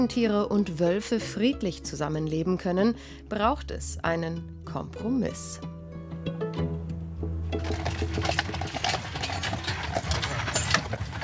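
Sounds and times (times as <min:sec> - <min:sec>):
speech: 0:00.0 - 0:06.9
carriage wheels rumbling and rattling: 0:07.5 - 0:11.2
horse hooves clip-clopping pulling a carriage: 0:07.5 - 0:11.2.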